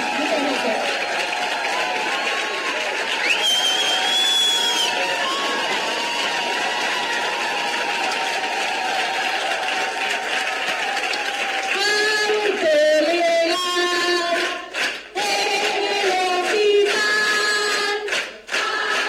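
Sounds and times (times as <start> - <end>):
audience cheering: 0.0 - 12.3
audience applause: 0.0 - 13.1, 13.9 - 19.0.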